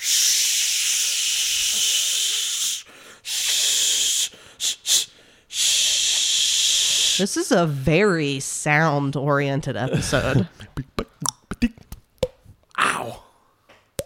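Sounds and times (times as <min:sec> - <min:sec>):
voice imitating a body spray hiss: 0:00.0 - 0:07.5
speech: 0:07.2 - 0:10.7.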